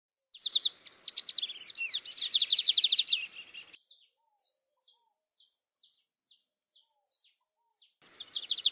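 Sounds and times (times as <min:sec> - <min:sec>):
lined seedeater buzzy trill of high notes: 0:00.4 - 0:03.8, 0:08.0 - 0:08.7.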